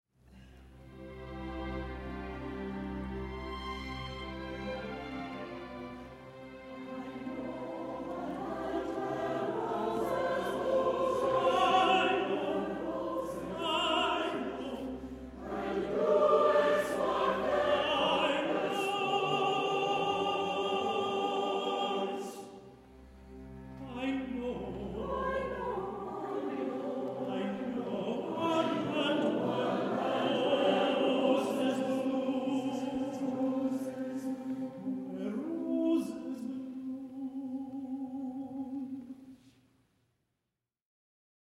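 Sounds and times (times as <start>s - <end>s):
chorus singing: 0.9s - 39.2s.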